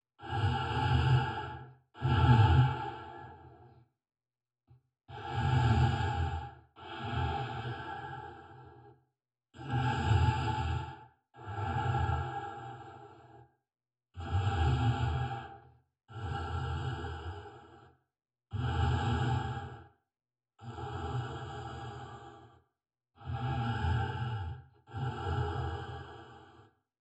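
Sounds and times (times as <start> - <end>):
breathing: 0.0 - 4.0, 4.7 - 26.9.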